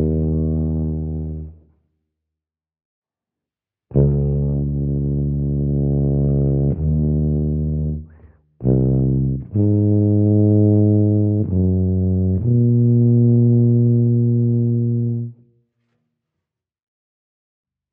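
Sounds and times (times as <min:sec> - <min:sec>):
tuba solo: 0:00.0 - 0:01.6, 0:03.9 - 0:15.4.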